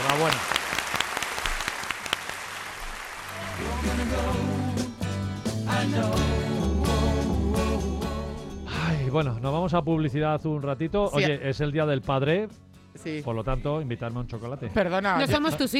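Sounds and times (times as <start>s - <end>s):
crowd clapping: 0.0s - 4.5s
speech: 0.2s - 0.6s, 9.1s - 15.7s
loud upbeat music with a steady bass line: 3.3s - 12.4s.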